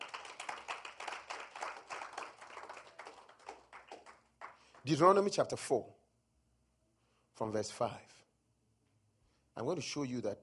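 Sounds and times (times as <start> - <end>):
crowd clapping: 0.0 - 5.1
speech: 4.8 - 6.0, 7.4 - 8.2, 9.6 - 10.4.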